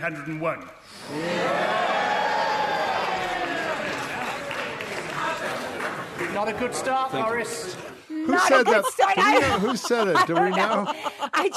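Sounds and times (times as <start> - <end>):
speech: 0.0 - 1.9, 6.2 - 11.5
cheering in parliament: 1.1 - 4.4
laughter: 1.1 - 11.5.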